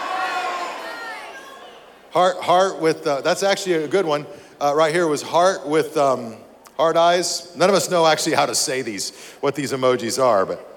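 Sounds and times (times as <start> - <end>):
audience yelling out answers together: 0.0 - 1.9
speech: 2.1 - 10.7.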